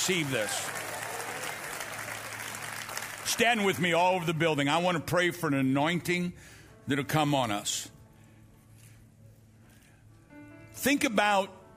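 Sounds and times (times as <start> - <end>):
speech: 0.0 - 0.8, 3.3 - 8.0, 10.8 - 11.6
audience clapping: 0.0 - 4.4.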